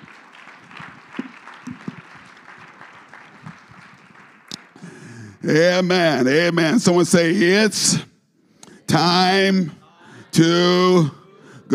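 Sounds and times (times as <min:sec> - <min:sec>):
audience clapping hands: 0:00.0 - 0:05.2
speech: 0:05.4 - 0:08.1, 0:08.9 - 0:09.8, 0:10.4 - 0:11.7.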